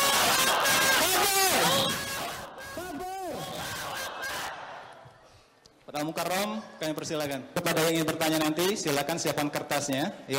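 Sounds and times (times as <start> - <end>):
crowd chanting at an Islamic religious gathering: 0.0 - 5.2
speech: 6.0 - 10.3.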